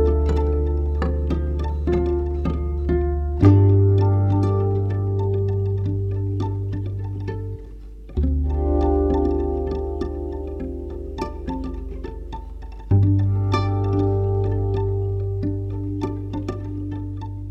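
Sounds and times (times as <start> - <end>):
harp loop: 0.0 - 17.5.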